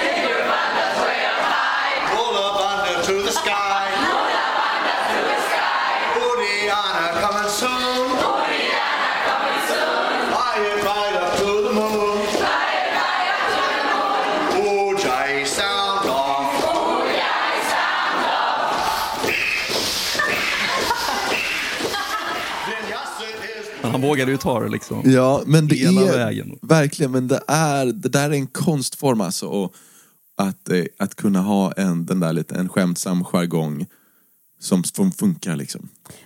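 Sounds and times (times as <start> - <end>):
crowd shouting a chant in unison: 0.0 - 2.3, 2.9 - 19.4
laughter: 13.2 - 14.5, 18.7 - 23.9
speech: 24.0 - 34.0, 34.6 - 36.2.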